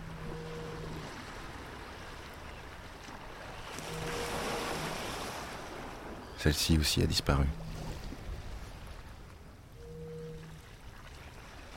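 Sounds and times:
coastal foghorn nicknamed the cow: 0.0 - 1.5, 3.8 - 5.3, 9.8 - 10.7
wind: 0.0 - 11.7
rushing surf: 3.8 - 6.7
speech: 6.4 - 7.7.

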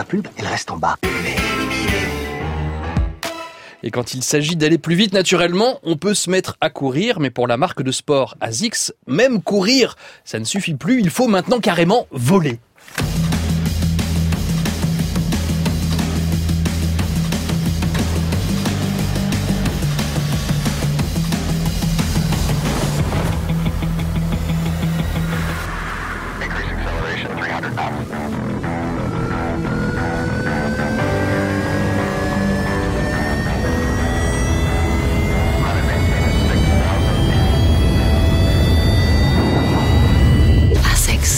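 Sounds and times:
speech: 0.0 - 1.8, 3.8 - 13.2
advert music: 1.0 - 3.8, 13.0 - 41.3.

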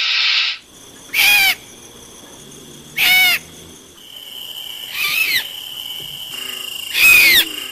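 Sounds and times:
barn owl giving harsh shrill screeches: 0.1 - 1.6, 3.0 - 3.5, 4.9 - 5.5, 6.3 - 7.6.

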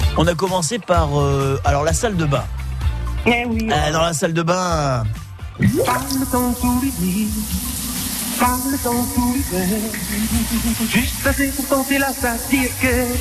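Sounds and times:
speech: 0.2 - 2.6, 3.2 - 7.8, 8.4 - 13.2
water running from a bathroom fountain: 5.6 - 13.2.

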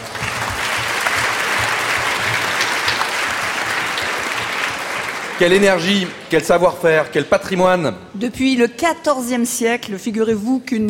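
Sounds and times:
crowd applause: 0.0 - 6.8
speech: 5.4 - 10.8.

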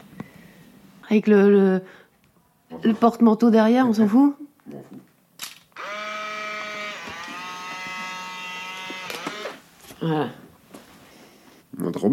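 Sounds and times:
speech: 1.1 - 2.0, 2.7 - 5.0, 10.0 - 10.4, 11.8 - 12.1
Polaroid instant camera click and motor whir ejecting the print: 5.4 - 9.6.

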